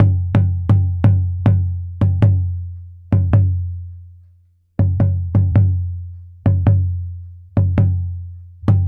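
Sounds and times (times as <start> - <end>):
African tambora drum: 0.0 - 4.2, 4.8 - 8.8.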